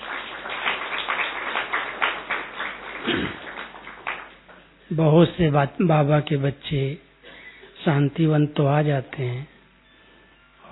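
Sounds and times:
audience clapping: 0.0s - 4.7s
speech: 5.0s - 7.0s, 7.8s - 9.5s.

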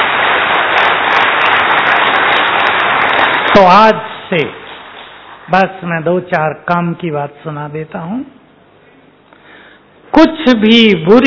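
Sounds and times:
audience clapping: 0.0s - 5.6s
speech: 3.6s - 4.6s, 5.5s - 8.4s, 10.1s - 11.2s.

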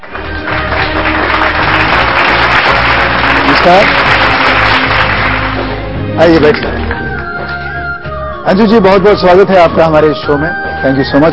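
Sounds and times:
loud applause: 0.0s - 5.7s
speech: 3.6s - 4.1s, 6.2s - 6.8s, 8.5s - 11.3s.

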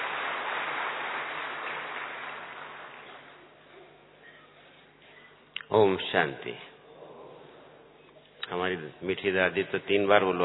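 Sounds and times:
audience applause: 0.0s - 3.5s
speech: 5.7s - 6.7s, 8.5s - 10.4s.

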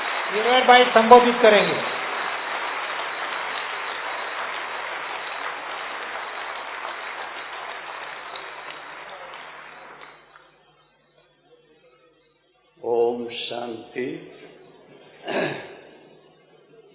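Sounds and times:
loud audience applause: 0.0s - 10.4s
speech: 0.3s - 2.0s.

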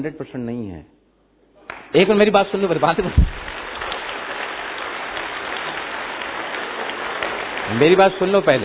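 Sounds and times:
speech: 0.0s - 1.0s, 1.9s - 3.4s, 7.7s - 8.6s
audience clapping at a public gathering: 1.6s - 8.6s.

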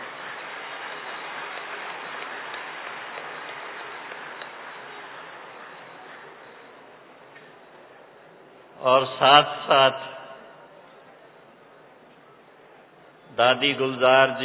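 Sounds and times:
audience clapping: 0.0s - 6.4s
speech: 8.8s - 10.2s, 13.4s - 14.4s.

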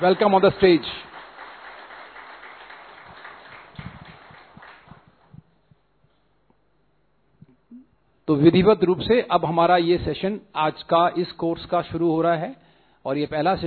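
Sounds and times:
speech: 0.0s - 1.1s, 8.3s - 13.6s
audience applause welcoming a speaker: 0.0s - 5.3s.

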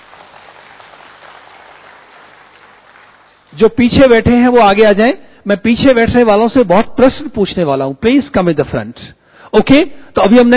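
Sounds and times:
audience applause in a seated workshop hall: 0.0s - 3.5s
speech: 3.5s - 10.5s.

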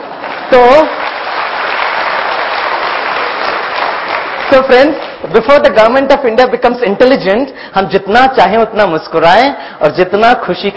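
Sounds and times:
audience applause: 0.0s - 5.3s
speech: 0.5s - 1.1s, 4.5s - 10.7s.

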